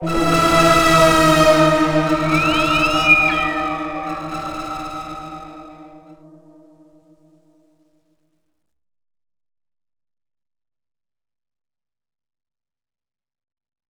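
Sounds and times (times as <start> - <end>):
music sting: 0.0 - 6.5.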